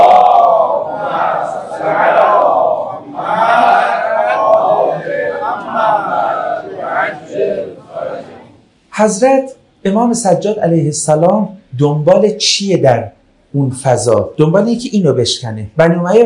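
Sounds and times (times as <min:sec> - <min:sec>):
crowd reciting salawat in unison: 0:00.0 - 0:08.6
speech: 0:09.0 - 0:16.2.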